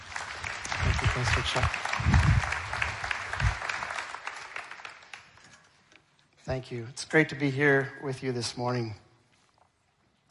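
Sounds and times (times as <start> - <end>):
audience applause: 0.0 - 5.7
speech: 1.1 - 2.5, 6.5 - 9.0.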